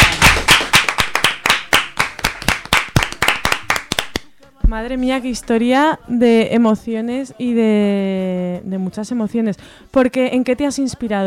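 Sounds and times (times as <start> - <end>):
audience applause from a small group: 0.0 - 4.2
speech: 4.7 - 11.2.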